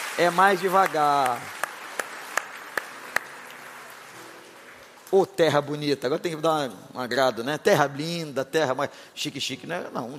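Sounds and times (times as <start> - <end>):
audience applause: 0.0 - 5.0
speech: 0.2 - 1.6, 5.1 - 10.1.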